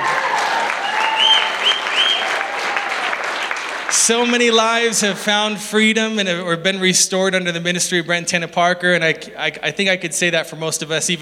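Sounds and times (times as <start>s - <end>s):
audience applause: 0.0s - 4.5s
speech: 4.0s - 11.2s.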